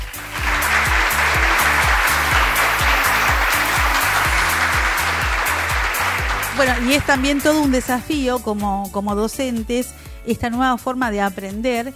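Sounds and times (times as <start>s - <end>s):
applause: 0.0s - 8.0s
speech: 6.6s - 11.9s.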